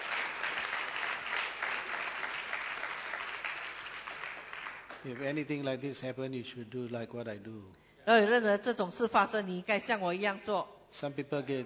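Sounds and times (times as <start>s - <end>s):
audience applause: 0.0s - 5.4s
speech: 5.0s - 11.6s.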